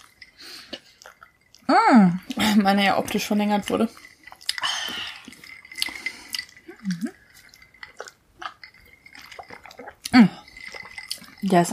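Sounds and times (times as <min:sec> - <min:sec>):
someone chewing cake while tasting it: 0:00.0 - 0:02.6, 0:03.9 - 0:11.7
speech: 0:01.7 - 0:04.0, 0:11.5 - 0:11.7.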